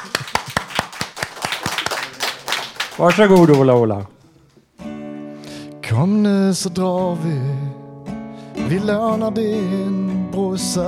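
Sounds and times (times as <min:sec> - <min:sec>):
few people clapping hands: 0:00.0 - 0:04.6
speech: 0:03.0 - 0:04.1, 0:05.9 - 0:07.8, 0:08.6 - 0:10.8.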